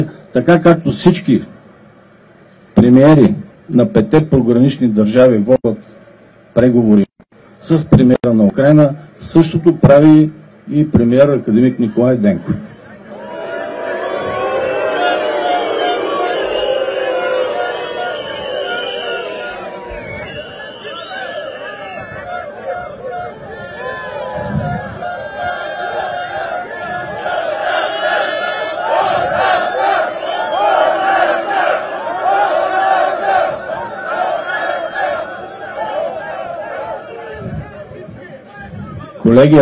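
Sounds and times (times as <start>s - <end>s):
speech: 0.0s - 1.6s, 2.8s - 5.8s, 6.6s - 12.7s, 39.4s - 39.5s
protest crowd shouting: 12.9s - 38.7s.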